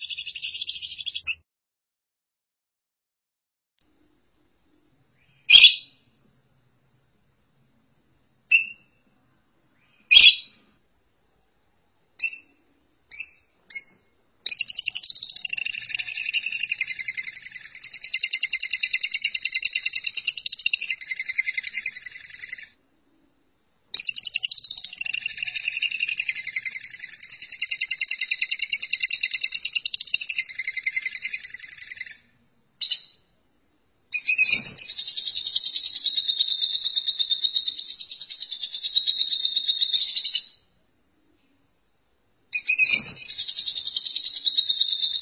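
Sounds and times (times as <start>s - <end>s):
lovebird chirping and chattering: 0.0s - 1.4s, 5.2s - 5.9s, 8.5s - 9.0s, 9.9s - 10.6s, 12.2s - 22.8s, 23.9s - 33.3s, 34.1s - 40.7s, 42.5s - 45.2s.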